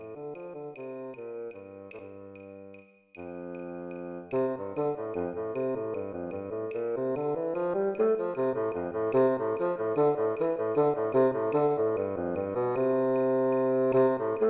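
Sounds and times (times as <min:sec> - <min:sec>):
bass clarinet playing: 0:03.3 - 0:14.4.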